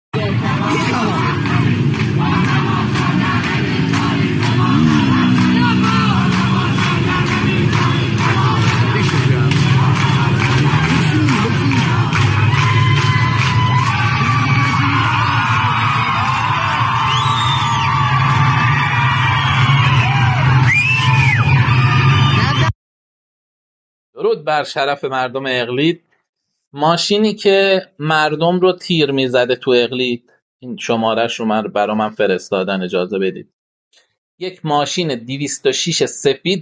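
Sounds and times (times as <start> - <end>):
speech: 0.3 - 1.6, 24.4 - 26.1, 26.7 - 36.6
street protest crowd yelling: 0.3 - 22.7.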